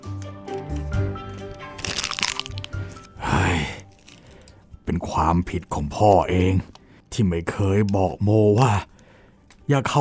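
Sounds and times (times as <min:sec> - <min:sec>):
sheet of paper crumpled angrily in someone's hands: 0:01.8 - 0:03.1, 0:03.9 - 0:04.4
speech: 0:04.9 - 0:08.9, 0:09.7 - 0:09.9.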